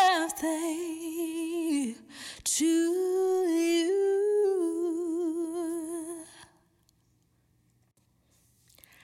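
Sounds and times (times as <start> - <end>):
woman singing a birthday song: 0.0 - 6.5.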